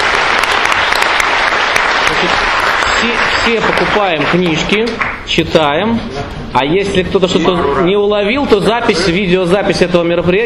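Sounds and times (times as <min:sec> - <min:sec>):
audience at a book lecture applauding the speaker: 0:00.0 - 0:05.2
speech: 0:03.0 - 0:10.4.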